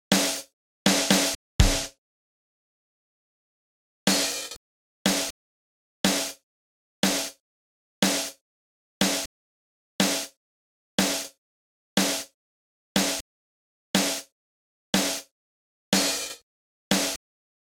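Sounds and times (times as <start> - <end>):
drums: 0.1 - 2.0, 4.1 - 5.4, 6.0 - 6.4, 7.0 - 7.4, 8.0 - 8.4, 9.0 - 9.3, 10.0 - 10.4, 11.0 - 11.4, 12.0 - 12.4, 13.0 - 13.2, 14.0 - 14.3, 15.0 - 15.3, 15.9 - 17.2.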